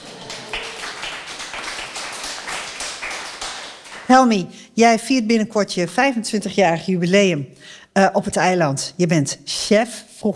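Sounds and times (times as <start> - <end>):
small group applause: 0.0 - 4.2
speech: 4.1 - 10.3.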